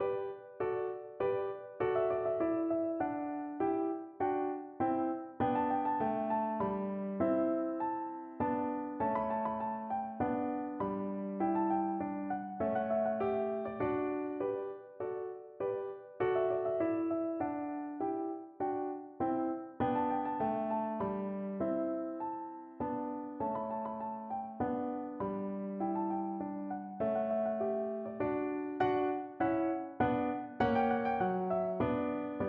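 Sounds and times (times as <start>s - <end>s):
piano minuet: 0.0s - 32.4s.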